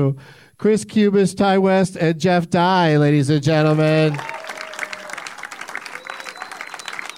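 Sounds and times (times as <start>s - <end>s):
speech: 0.0s - 4.3s
audience applause at a live comedy show: 3.6s - 7.1s
crowd noise: 3.7s - 7.1s.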